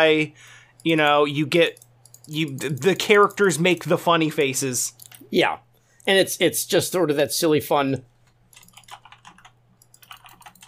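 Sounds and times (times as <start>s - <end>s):
speech: 0.0s - 8.1s
computer keyboard and mouse clicking while playing Diablo 4 PvP: 1.6s - 3.4s, 8.3s - 10.6s.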